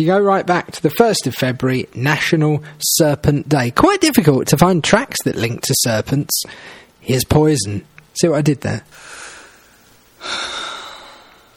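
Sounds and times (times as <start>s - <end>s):
speech: 0.0s - 9.2s
heavy breathy gasp opening a rock ballad: 6.5s - 7.0s, 8.9s - 11.5s.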